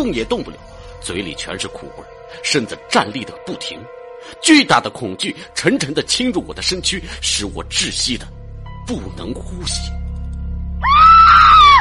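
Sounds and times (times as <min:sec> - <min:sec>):
speech: 0:00.0 - 0:10.0
terrified human scream: 0:10.8 - 0:11.7.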